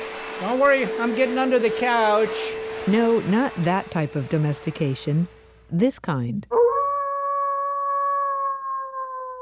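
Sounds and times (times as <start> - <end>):
speech: 0.4 - 6.5
wolf howling: 6.5 - 9.4.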